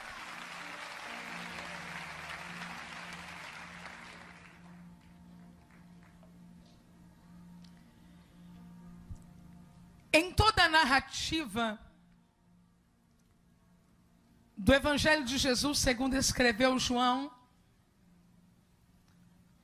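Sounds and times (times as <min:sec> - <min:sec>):
audience applause: 0:00.0 - 0:06.2
speech: 0:10.2 - 0:11.8, 0:14.7 - 0:17.4.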